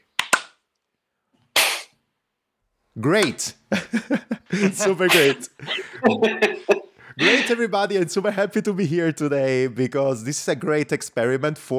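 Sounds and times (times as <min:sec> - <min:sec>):
sharp claps: 0:00.2 - 0:00.6, 0:05.1 - 0:05.4
speech: 0:03.0 - 0:11.7
laughter: 0:03.7 - 0:08.4.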